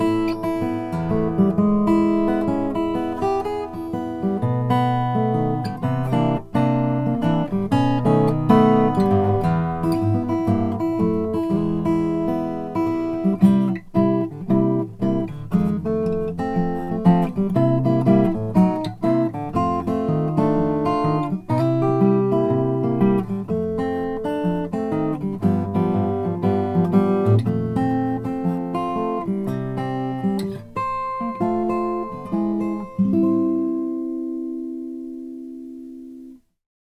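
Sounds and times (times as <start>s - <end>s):
sinker mahogany acoustic guitar: 0.0s - 36.5s.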